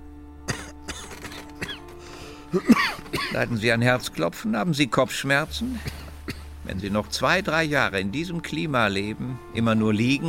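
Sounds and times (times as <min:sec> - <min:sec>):
patient coughing on a doctor's request during an examination: 0:00.5 - 0:01.9, 0:02.5 - 0:03.5, 0:05.6 - 0:06.5
speech: 0:02.5 - 0:05.9, 0:06.7 - 0:10.2.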